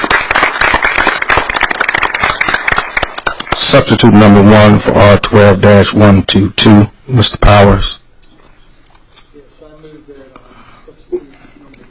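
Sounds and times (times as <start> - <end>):
applause after a roll-call vote at a legislative meeting: 0.0 - 3.9
speech: 3.7 - 8.0.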